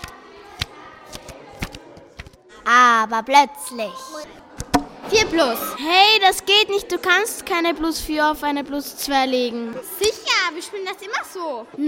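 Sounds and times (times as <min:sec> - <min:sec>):
playing cards dealt out for a group card game at a picnic: 0:00.0 - 0:02.4
speech: 0:02.6 - 0:04.5, 0:05.1 - 0:11.8.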